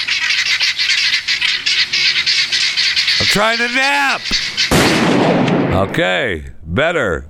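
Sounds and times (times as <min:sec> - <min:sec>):
guinea hens calling: 0:00.0 - 0:05.2
speech: 0:03.2 - 0:07.2.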